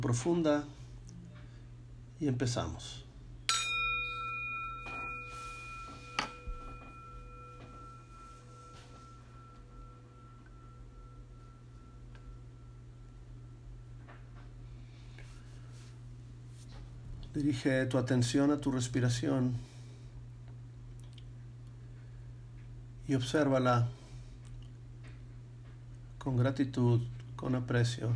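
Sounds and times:
speech: 0:00.0 - 0:00.8, 0:02.2 - 0:03.0, 0:17.4 - 0:19.7, 0:23.1 - 0:24.0, 0:26.2 - 0:28.1
steady low hum: 0:00.0 - 0:28.1
meditation bell strike: 0:03.5 - 0:15.9.

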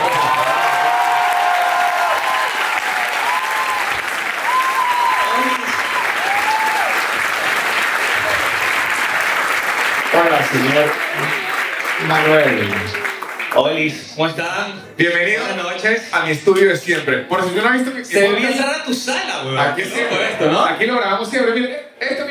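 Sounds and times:
audience applause: 0:00.0 - 0:14.0
speech: 0:10.5 - 0:11.3, 0:12.0 - 0:13.0, 0:13.6 - 0:22.2.

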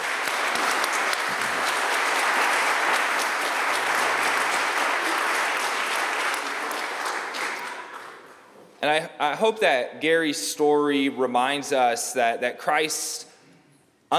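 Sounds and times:
audience round of applause: 0:00.0 - 0:08.4
speech: 0:08.9 - 0:13.3.

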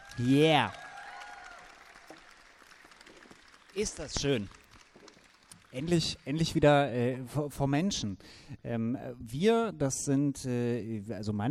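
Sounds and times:
audience applause: 0:00.0 - 0:06.9
speech: 0:00.2 - 0:00.8, 0:03.8 - 0:04.6, 0:05.7 - 0:11.4.

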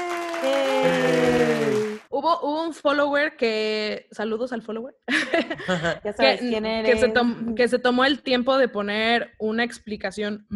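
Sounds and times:
applause: 0:00.0 - 0:02.1
speech: 0:00.4 - 0:01.6, 0:02.2 - 0:10.5
laughter: 0:00.5 - 0:02.0, 0:05.1 - 0:06.4.

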